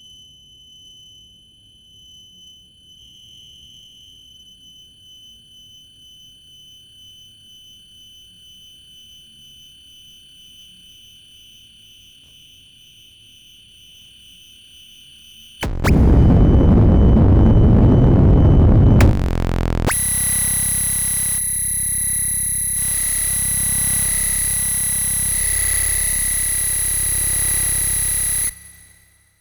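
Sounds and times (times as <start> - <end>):
tuning noise: 15.6 - 29.2.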